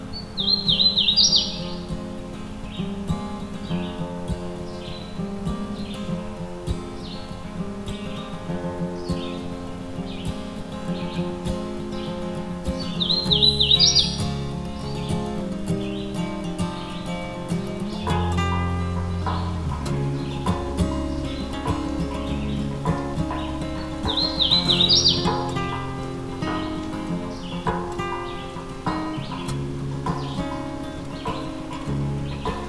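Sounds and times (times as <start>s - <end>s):
Hooded Warbler singing in Allegheny National Forest: 0.0s - 32.6s
steady dense hum of sustained tones: 1.5s - 32.6s.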